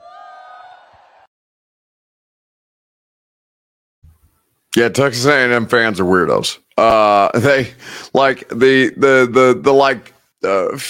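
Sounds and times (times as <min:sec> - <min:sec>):
crowd wooing at midnight yell practice: 0:00.0 - 0:01.3
speech: 0:04.7 - 0:10.8.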